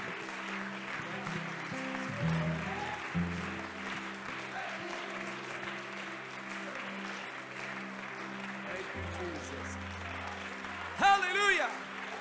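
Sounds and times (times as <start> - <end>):
people clapping hands unto the Lord: 0.0 - 12.2.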